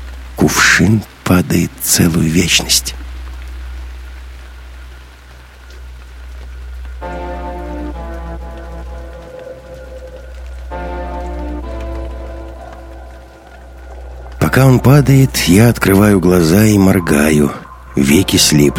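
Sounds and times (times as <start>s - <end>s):
rainwater dripping and pattering off a wagon roof: 0.0s - 18.7s
speech: 0.4s - 3.0s, 14.6s - 18.7s
low hum: 3.0s - 18.7s
tonal drone: 5.5s - 18.7s.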